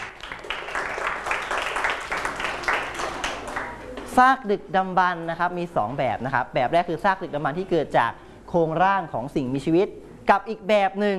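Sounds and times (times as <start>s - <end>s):
clapping applause: 0.0s - 4.1s
speech: 4.2s - 11.1s.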